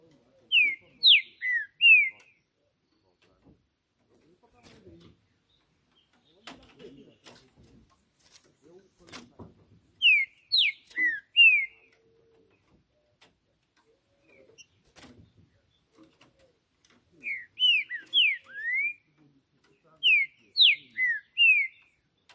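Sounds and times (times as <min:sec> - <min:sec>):
green-winged saltator whistling song: 0:00.5 - 0:02.4, 0:10.0 - 0:12.0, 0:17.2 - 0:19.1, 0:19.8 - 0:22.3.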